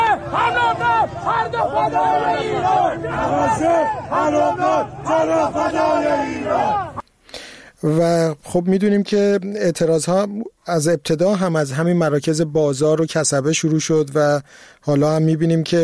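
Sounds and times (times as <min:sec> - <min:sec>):
crowd chanting anti-government protest slogans at Tehran's fruit and vegetable market: 0:00.0 - 0:07.0
speech: 0:00.4 - 0:06.9, 0:07.8 - 0:15.8.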